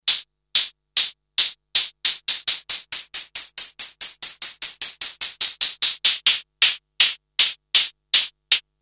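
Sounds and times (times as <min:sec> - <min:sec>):
hi-hat cymbals: 0:00.0 - 0:08.7.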